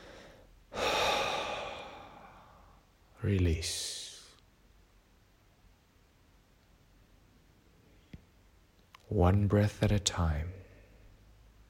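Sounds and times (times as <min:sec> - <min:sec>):
slow exhaled breath during a guided breathing exercise: 0:00.0 - 0:02.8
speech: 0:03.2 - 0:04.0, 0:09.1 - 0:10.6.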